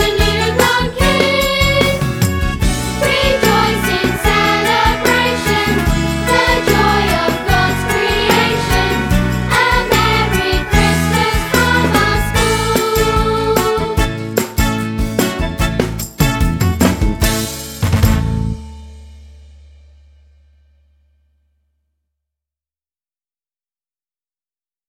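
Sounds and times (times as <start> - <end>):
nativity song: 0.0 - 18.0.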